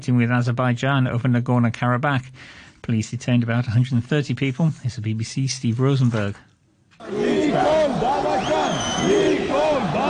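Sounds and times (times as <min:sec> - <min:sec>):
speech: 0:00.0 - 0:10.0
large protesting crowd shouting: 0:07.0 - 0:10.0.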